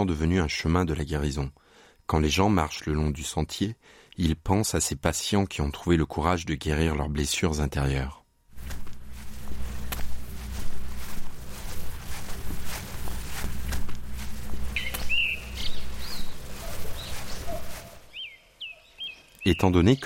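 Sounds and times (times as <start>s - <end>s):
speech: 0.0s - 8.2s, 19.4s - 20.0s
footsteps: 8.5s - 18.1s
leaves rustling in the wind: 8.5s - 19.4s
birds chirping: 9.0s - 20.0s.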